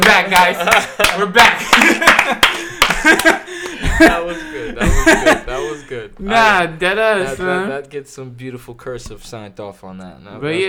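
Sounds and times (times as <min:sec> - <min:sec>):
people clapping: 0:00.0 - 0:05.7
laughter: 0:00.0 - 0:07.6
speech: 0:00.1 - 0:10.6.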